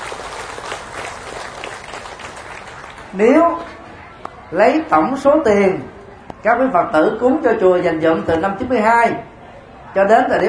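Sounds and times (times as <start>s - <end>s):
audience applause: 0.0s - 3.4s
speech: 3.1s - 3.8s, 4.5s - 9.3s, 10.0s - 10.4s.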